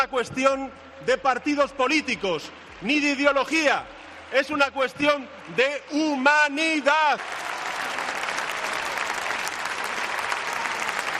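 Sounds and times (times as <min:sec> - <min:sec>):
speech: 0:00.0 - 0:07.4
audience applauding a speech: 0:02.6 - 0:11.1.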